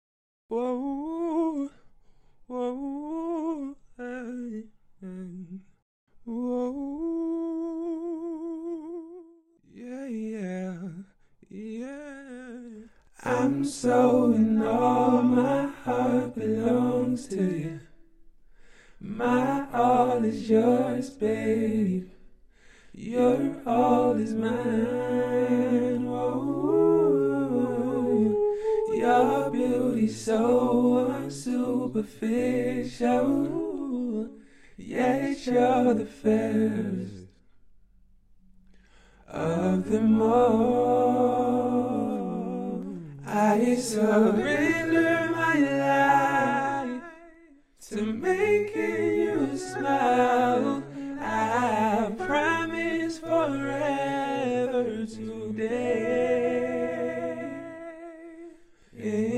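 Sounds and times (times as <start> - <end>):
a cappella R&B vocals in B minor at 60 bpm: 0.5 - 37.5, 38.7 - 59.3.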